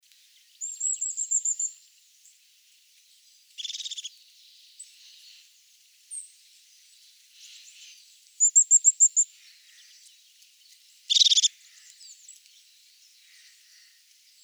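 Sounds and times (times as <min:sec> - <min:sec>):
European crested tit calling with high purring trills and buzzy bursts: 0:11.1 - 0:11.5.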